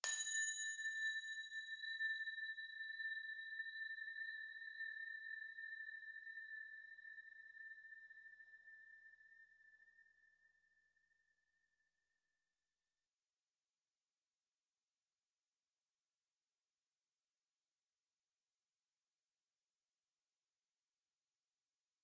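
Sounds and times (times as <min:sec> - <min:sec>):
bell: 0:00.0 - 0:10.1.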